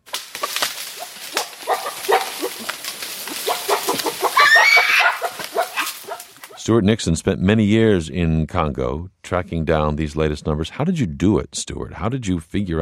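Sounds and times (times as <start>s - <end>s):
clucking animal calls in Congo rainforest: 0.3s - 6.7s
chirping: 0.4s - 6.6s
speech: 6.6s - 12.7s.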